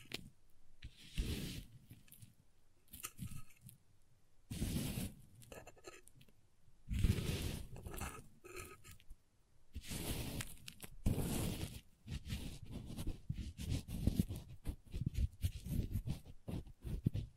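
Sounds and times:
crayons scraping and carving against a surface: 0.0 - 2.3, 4.5 - 6.3, 6.9 - 9.1, 9.8 - 17.3.

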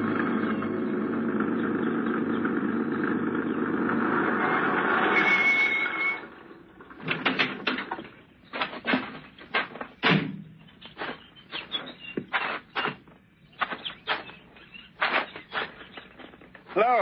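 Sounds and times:
truck engine driving down a hot dusty street at a mine: 0.0 - 17.0
light clattering knocks: 7.0 - 16.8.

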